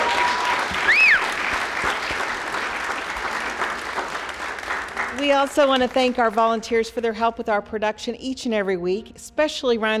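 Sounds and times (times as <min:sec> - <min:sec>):
round of applause: 0:00.0 - 0:06.6
speech: 0:05.2 - 0:09.9.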